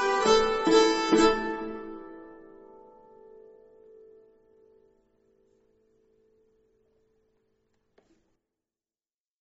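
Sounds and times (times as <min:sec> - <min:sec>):
nyckelharpa playing a schottische: 0:00.0 - 0:02.0.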